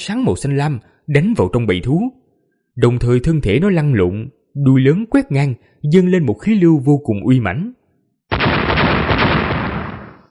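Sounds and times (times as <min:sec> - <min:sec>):
speech: 0:00.0 - 0:02.2, 0:02.8 - 0:07.8
series of explosions: 0:08.3 - 0:10.3.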